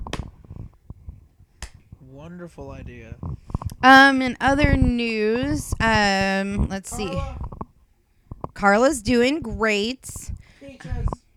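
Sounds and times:
slow clap: 0.0 - 0.5, 1.6 - 1.8
speech: 2.1 - 7.5, 8.6 - 11.2.

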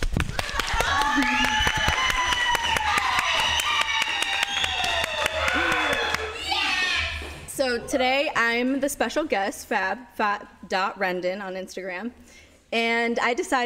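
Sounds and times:
group clapping: 0.0 - 7.0
speech: 1.2 - 1.4, 7.9 - 13.6.

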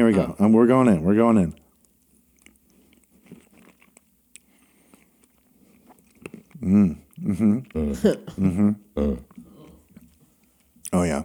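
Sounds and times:
speech: 0.0 - 1.6, 6.6 - 9.4, 10.9 - 11.2
person biting and chewing ice cream: 1.5 - 10.9.

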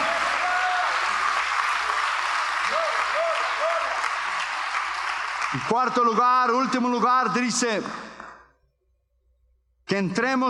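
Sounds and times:
audience applause: 0.0 - 6.4
speech: 5.6 - 8.1, 9.9 - 10.4.

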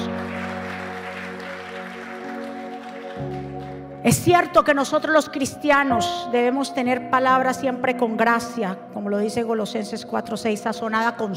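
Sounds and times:
crowd applauding loudly: 0.0 - 4.0
sustained keyboard chords: 0.0 - 11.3
speech: 3.2 - 11.3.

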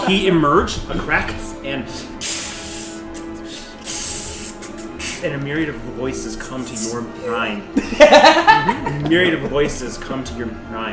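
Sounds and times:
speech: 0.1 - 2.4, 5.2 - 10.9
steam hissing as a sound effect for red steam rising from a figure encased in ice: 1.9 - 5.3
laughter: 7.2 - 10.1.

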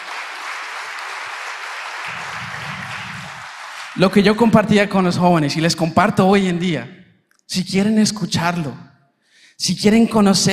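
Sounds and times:
audience applause: 0.0 - 4.3
speech: 4.0 - 8.9, 9.6 - 10.5.

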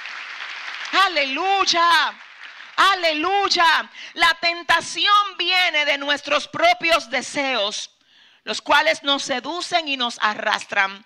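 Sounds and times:
crowd applause: 0.0 - 2.8
speech: 1.0 - 11.0.

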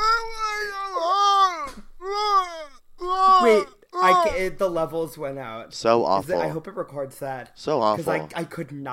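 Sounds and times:
person imitating men screaming: 0.0 - 4.4
speech: 4.3 - 8.9.

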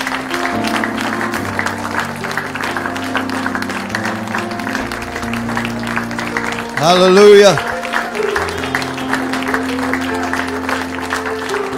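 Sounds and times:
church congregation clapping during a morning service: 0.0 - 11.7
speech: 6.8 - 7.7.

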